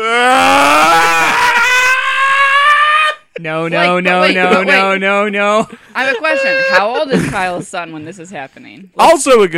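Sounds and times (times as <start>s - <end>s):
person imitating a shocked parent's scream: 0.0s - 4.9s, 6.0s - 7.0s
laughter: 0.9s - 8.1s
speech: 3.4s - 9.5s.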